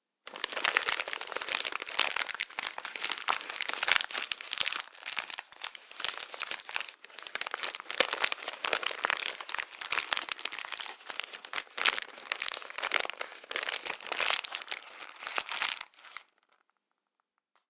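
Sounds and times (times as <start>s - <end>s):
plastic wrapper crunching: 0.3s - 16.6s.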